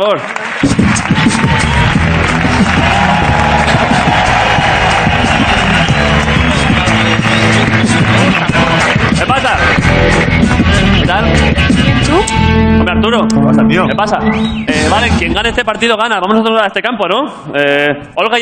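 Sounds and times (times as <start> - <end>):
speech: 0.0 - 1.6, 11.2 - 18.4
crowd clapping: 0.0 - 12.4
crowd shouts and whoops: 2.6 - 7.0.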